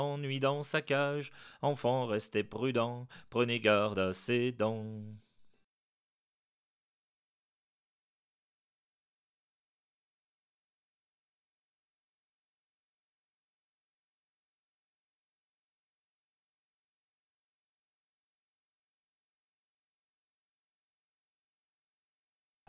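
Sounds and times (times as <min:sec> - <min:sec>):
voice: 0:00.0 - 0:05.2.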